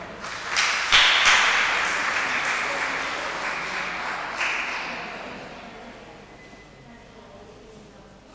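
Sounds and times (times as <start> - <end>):
audience applause at a prize raffle: 0.0 - 5.4.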